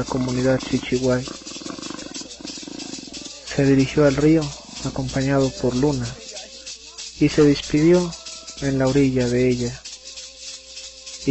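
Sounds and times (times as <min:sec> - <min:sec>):
speech: 0:00.0 - 0:01.6, 0:03.6 - 0:06.2, 0:07.2 - 0:09.8
puma roar: 0:00.0 - 0:06.2.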